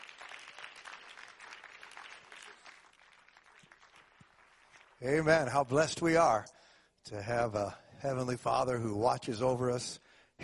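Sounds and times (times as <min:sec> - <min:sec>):
audience clapping: 0:00.0 - 0:05.6
speech: 0:05.0 - 0:10.4.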